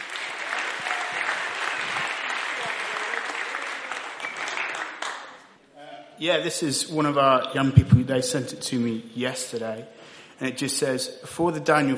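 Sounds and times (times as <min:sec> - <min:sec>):
church audience applause welcoming a youth worker: 0:00.0 - 0:05.5
speech: 0:06.2 - 0:11.9.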